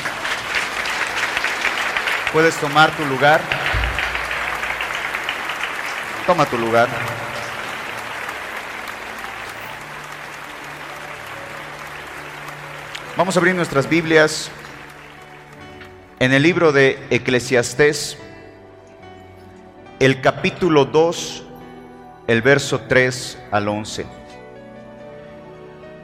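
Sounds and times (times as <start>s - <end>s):
audience applause: 0.0s - 16.2s
speech: 2.3s - 3.7s, 6.3s - 7.4s, 13.2s - 14.6s, 16.2s - 18.3s, 20.0s - 21.5s, 22.3s - 24.2s.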